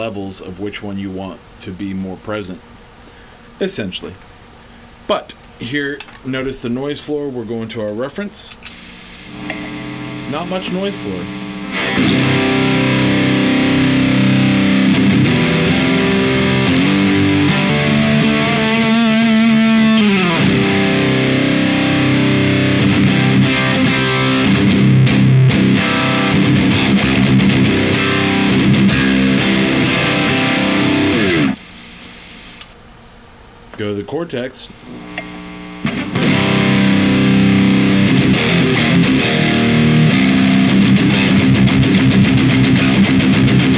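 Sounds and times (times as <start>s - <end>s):
speech: 0.0s - 2.8s, 3.6s - 4.3s, 5.1s - 12.2s, 34.2s - 35.0s
electric guitar played through a cheap distortion pedal: 8.6s - 32.8s, 34.7s - 43.7s.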